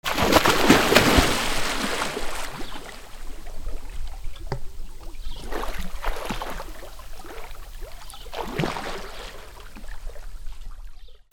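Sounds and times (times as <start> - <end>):
water: 0.0 - 11.3.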